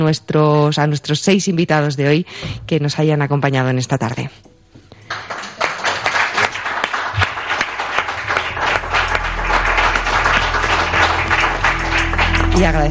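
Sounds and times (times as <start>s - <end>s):
speech: 0.0s - 4.5s, 12.6s - 12.8s
live studio audience applauding: 5.0s - 12.8s.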